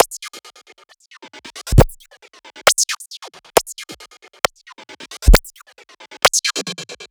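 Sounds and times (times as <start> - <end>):
drum kit beat at 135 bpm: 1.7 - 2.0, 5.3 - 5.5.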